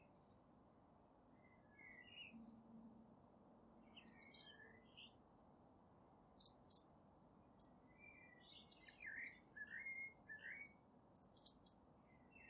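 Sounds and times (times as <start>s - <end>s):
European robin song of high thin phrases and trills: 1.3s - 2.5s, 3.7s - 5.3s, 6.4s - 12.4s.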